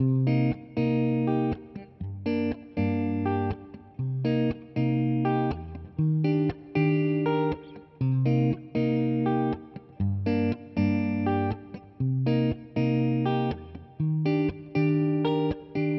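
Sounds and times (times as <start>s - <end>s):
guitar loop in C minor: 0.0s - 15.9s.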